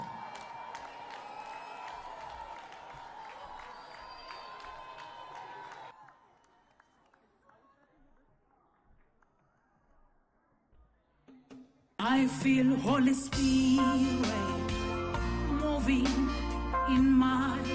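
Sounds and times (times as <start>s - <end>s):
church audience applause and cheering: 0.0s - 7.7s
speech: 12.2s - 14.6s, 15.9s - 17.6s.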